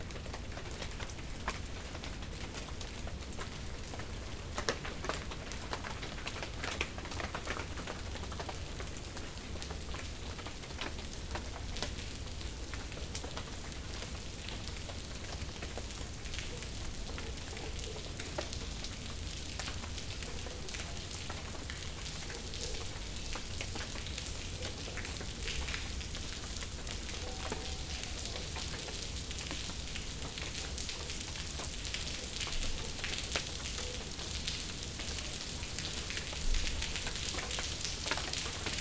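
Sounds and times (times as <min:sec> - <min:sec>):
rain on tree leaves: 0:00.0 - 0:38.8.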